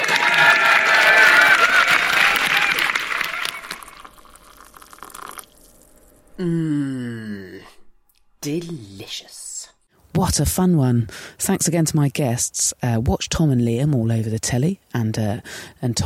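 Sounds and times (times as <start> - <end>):
audience clapping and cheering: 0.0 - 4.5
speech: 10.2 - 16.0.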